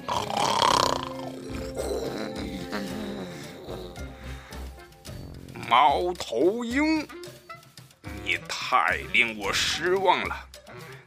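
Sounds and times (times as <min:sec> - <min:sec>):
lion roaring: 0:00.0 - 0:04.4
speech: 0:05.7 - 0:07.2, 0:08.7 - 0:10.5.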